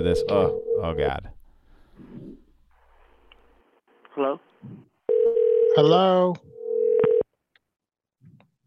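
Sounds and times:
speech: 0:00.0 - 0:01.4, 0:04.2 - 0:04.9, 0:05.8 - 0:06.5
electronic telephone tone: 0:05.1 - 0:05.9, 0:06.5 - 0:07.2.

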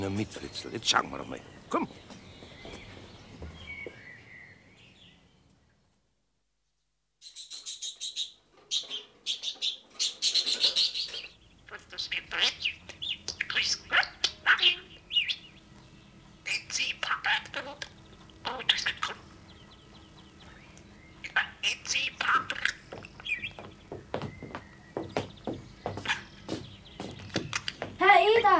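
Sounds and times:
speech: 0:00.0 - 0:02.1
caged bird chirping: 0:00.0 - 0:05.9, 0:06.7 - 0:28.5.

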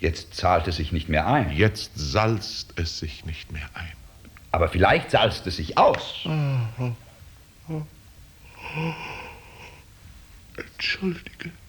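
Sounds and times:
speech: 0:00.0 - 0:07.0, 0:07.7 - 0:08.0, 0:08.6 - 0:09.2, 0:10.6 - 0:11.6
person yawning: 0:06.2 - 0:07.0, 0:07.7 - 0:09.8.

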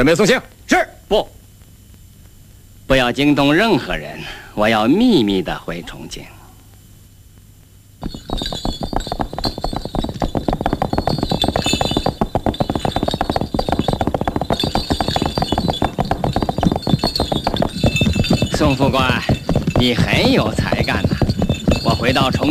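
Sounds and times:
speech: 0:00.0 - 0:01.4, 0:02.9 - 0:06.4, 0:08.0 - 0:08.8, 0:18.6 - 0:21.2, 0:22.0 - 0:22.4
horse-drawn carriage hooves clattering: 0:08.0 - 0:22.4
rattling, jingling harness: 0:08.0 - 0:22.4.

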